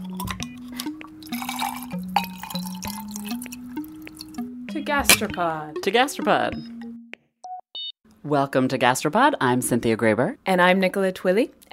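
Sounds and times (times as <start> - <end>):
drips: 0.0 - 4.5
gin and tonic water pouring into a glass: 0.0 - 4.5
speech: 4.8 - 6.7, 8.2 - 11.7.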